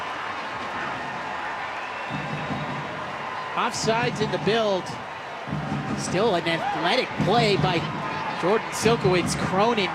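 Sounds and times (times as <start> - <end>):
crowd cheering in frenzy: 0.0 - 9.9
speech: 3.6 - 5.1, 6.0 - 9.9.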